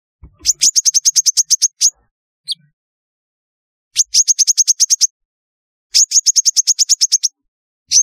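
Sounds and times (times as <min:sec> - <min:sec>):
sunbird chirping: 0:00.3 - 0:02.7, 0:04.0 - 0:05.1, 0:05.9 - 0:08.0.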